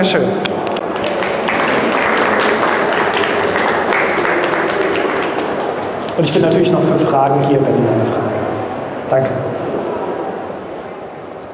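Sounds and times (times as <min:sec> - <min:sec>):
speech: 0:00.0 - 0:00.5, 0:06.2 - 0:08.4, 0:09.1 - 0:09.8
audience applause: 0:00.7 - 0:06.6.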